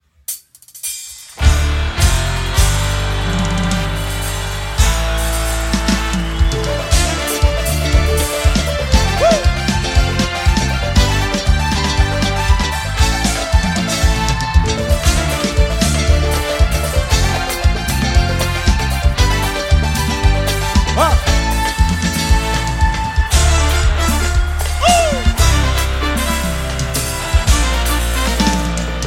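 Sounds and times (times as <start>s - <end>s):
opening solos: 1.4s - 29.0s.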